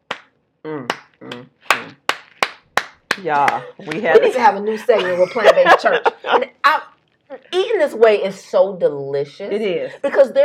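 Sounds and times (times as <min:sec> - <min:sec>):
slow clapping: 0:00.0 - 0:04.2
speech: 0:00.6 - 0:01.5, 0:03.2 - 0:10.4
laughter: 0:03.6 - 0:06.6.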